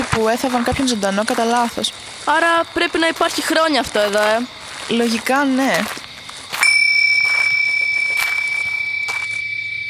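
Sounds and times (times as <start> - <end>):
speech: 0.2 - 6.0
small bell ringing: 6.6 - 9.8.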